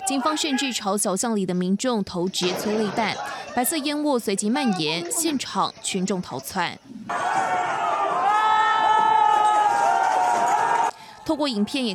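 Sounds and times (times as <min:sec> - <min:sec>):
speech: 0:00.1 - 0:07.3, 0:11.3 - 0:11.9
crowd clapping and cheering: 0:07.1 - 0:11.0.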